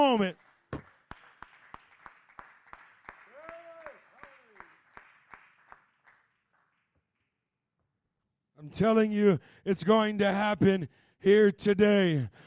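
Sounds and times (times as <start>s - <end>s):
audience clapping hands: 0.0s - 7.3s
speech: 0.1s - 0.4s, 8.6s - 12.4s.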